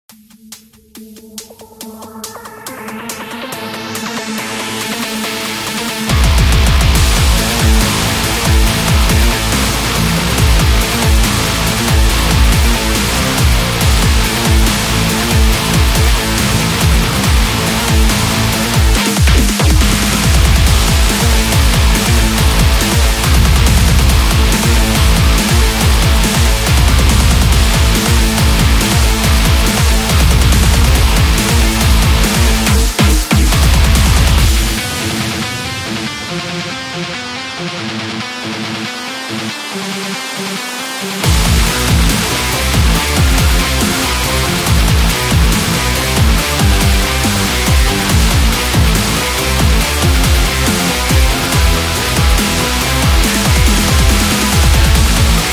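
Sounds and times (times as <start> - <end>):
brutal sport dubstep music: 0.1 - 55.5.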